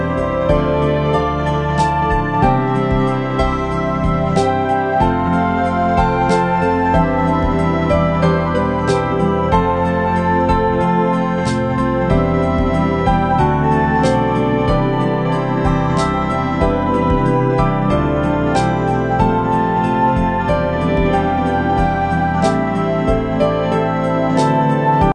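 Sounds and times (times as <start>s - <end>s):
soulful melody played on string instruments: 0.0s - 25.1s.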